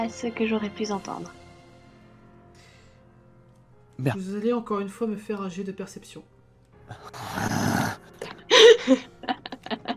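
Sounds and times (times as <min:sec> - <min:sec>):
speech: 0:00.0 - 0:01.4, 0:04.0 - 0:06.3, 0:08.9 - 0:09.1
man growling and groaning in frustration: 0:06.9 - 0:08.1
laughter: 0:08.2 - 0:09.9.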